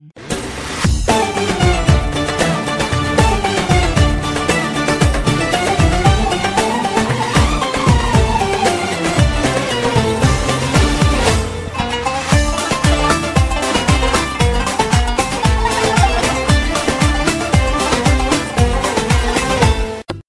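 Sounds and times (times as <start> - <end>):
Arabic ringtone: 0.9 - 19.8
laughter: 12.4 - 18.8.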